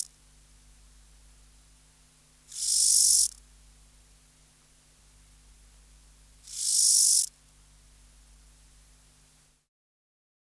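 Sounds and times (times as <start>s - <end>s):
grasshopper dry hissing buzz: 0.0s - 9.5s.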